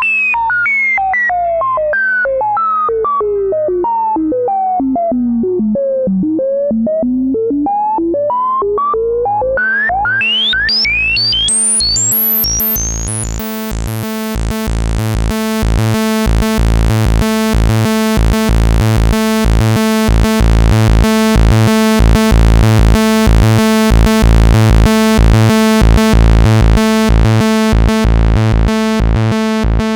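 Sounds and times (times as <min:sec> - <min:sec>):
simple synth sequence: 0:00.0 - 0:29.9.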